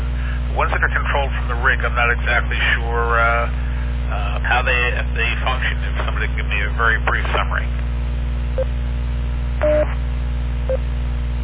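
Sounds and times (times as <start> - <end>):
steady low mains hum: 0.0 - 11.4
speech: 0.6 - 7.9, 8.6 - 8.8
Echolink tones on an amateur radio net: 9.6 - 10.0.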